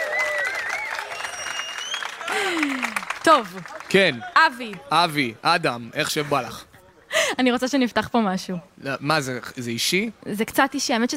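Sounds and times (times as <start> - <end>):
audience applause: 0.0 - 5.3
speech: 2.3 - 6.7, 7.3 - 11.1.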